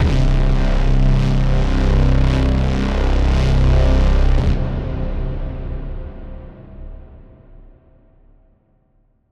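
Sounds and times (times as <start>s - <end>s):
epic braam hit: 0.0s - 7.7s.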